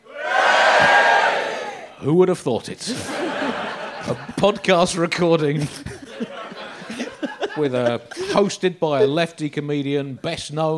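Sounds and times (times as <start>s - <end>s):
audience cheering and whooping: 0.0s - 2.0s
speech: 2.0s - 6.4s, 7.6s - 10.7s
laughter: 2.8s - 9.2s.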